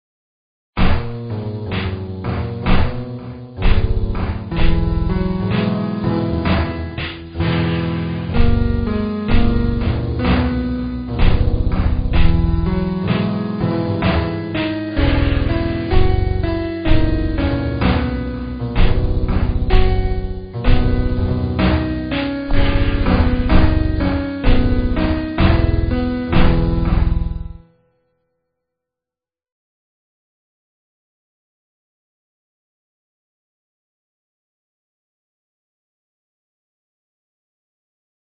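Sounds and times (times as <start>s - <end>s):
backing track: 0.8s - 27.6s.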